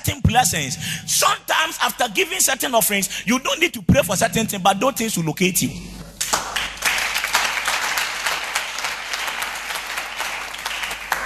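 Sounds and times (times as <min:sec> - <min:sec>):
speech: 0:00.1 - 0:06.0
audience clapping: 0:06.2 - 0:11.2.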